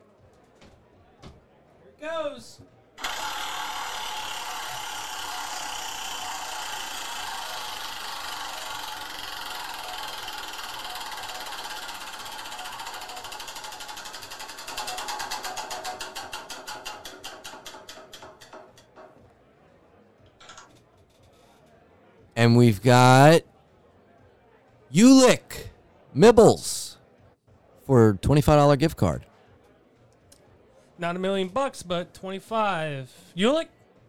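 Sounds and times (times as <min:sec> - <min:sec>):
speech: 0:02.0 - 0:03.1, 0:22.4 - 0:23.5, 0:25.0 - 0:25.4, 0:26.2 - 0:26.7, 0:28.3 - 0:29.3, 0:31.0 - 0:33.7
prize wheel spun at a gift-card drawing: 0:03.0 - 0:17.2.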